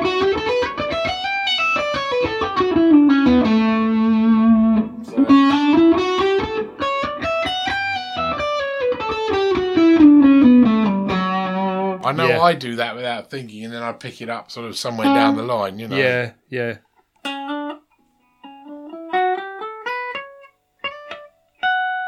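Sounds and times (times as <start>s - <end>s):
electric guitar hammer-ons and pull-offs: 0.0s - 12.4s, 17.2s - 22.0s
speech: 12.1s - 16.9s.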